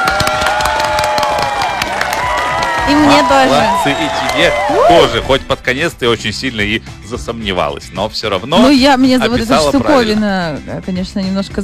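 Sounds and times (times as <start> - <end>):
applause: 0.0 - 4.8
speech: 2.9 - 11.6.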